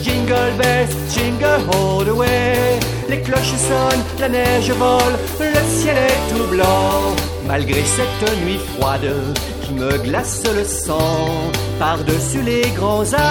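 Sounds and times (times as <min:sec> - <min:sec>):
children's Christmas song: 0:00.0 - 0:13.2.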